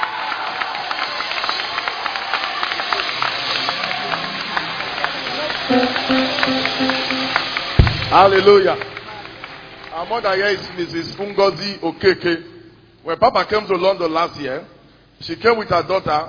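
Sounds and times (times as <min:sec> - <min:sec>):
large crowd clapping in a reverberant room: 0:00.0 - 0:11.3
speech: 0:05.7 - 0:07.2, 0:08.1 - 0:08.9, 0:10.0 - 0:16.2.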